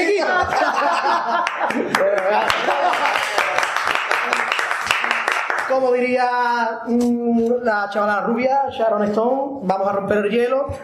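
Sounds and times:
laughter: 0:00.0 - 0:04.6
audience applause: 0:01.1 - 0:05.8
speech: 0:05.9 - 0:10.8.

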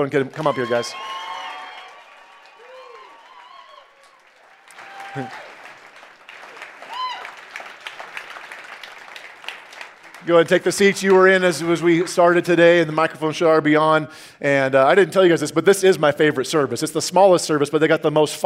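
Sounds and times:
speech: 0:00.0 - 0:01.2, 0:05.2 - 0:05.5, 0:10.2 - 0:18.4
church congregation applause welcoming guests: 0:00.0 - 0:12.5.

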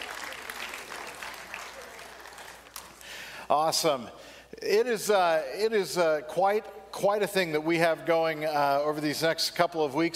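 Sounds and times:
church congregation applause welcoming mission teams at a morning service: 0:00.0 - 0:03.3
speech: 0:03.5 - 0:10.1.

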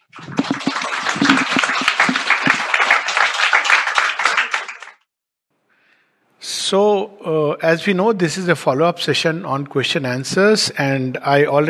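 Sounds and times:
audience clapping in welcome: 0:00.0 - 0:05.1
speech: 0:06.7 - 0:11.6.

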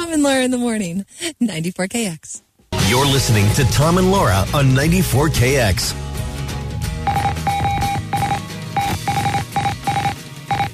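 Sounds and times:
speech: 0:00.1 - 0:06.2
Morse code beeps: 0:07.0 - 0:10.7.

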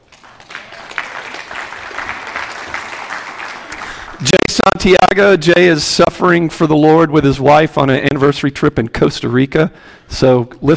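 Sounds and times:
audience clapping: 0:00.0 - 0:04.7
speech: 0:04.2 - 0:10.7.

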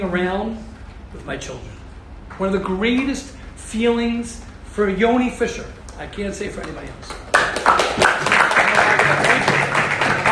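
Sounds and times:
speech: 0:00.0 - 0:01.8, 0:02.4 - 0:07.2
audience clapping: 0:06.6 - 0:10.3.

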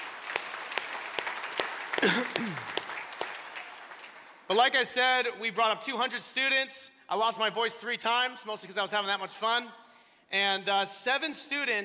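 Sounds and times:
audience round of applause: 0:00.0 - 0:04.5
speech: 0:02.0 - 0:02.8, 0:04.5 - 0:11.8.

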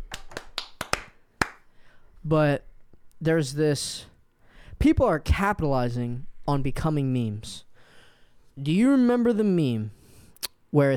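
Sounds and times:
hand claps: 0:00.0 - 0:01.7
speech: 0:02.2 - 0:04.1, 0:04.8 - 0:07.7, 0:08.6 - 0:10.0, 0:10.7 - 0:10.9.

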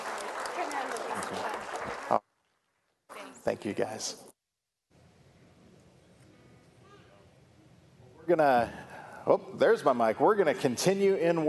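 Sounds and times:
audience applause: 0:00.0 - 0:02.2
speech: 0:01.3 - 0:02.2, 0:03.4 - 0:04.3, 0:08.3 - 0:11.4.

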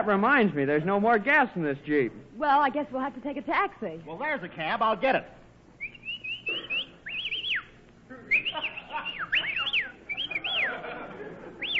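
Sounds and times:
speech: 0:00.0 - 0:05.4
low hum: 0:00.0 - 0:11.7
person whistling short swooping phrases: 0:05.8 - 0:07.7, 0:08.3 - 0:10.8
laughter: 0:08.1 - 0:11.7.

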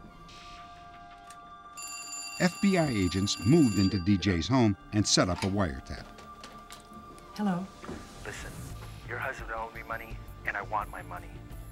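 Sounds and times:
telephone ringing: 0:01.7 - 0:05.4
speech: 0:02.4 - 0:06.2, 0:07.4 - 0:11.5.

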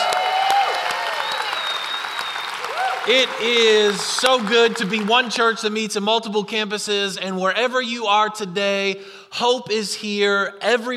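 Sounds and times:
scattered cheers: 0:00.0 - 0:04.4
audience applauding: 0:00.0 - 0:05.5
speech: 0:03.1 - 0:10.9.

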